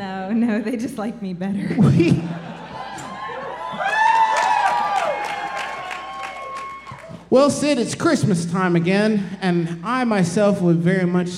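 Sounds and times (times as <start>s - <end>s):
speech: 0.3s - 2.5s, 7.3s - 11.3s
laughter: 1.6s - 4.0s
voices cheering and whooping: 2.5s - 7.3s
audience clapping: 2.8s - 7.4s.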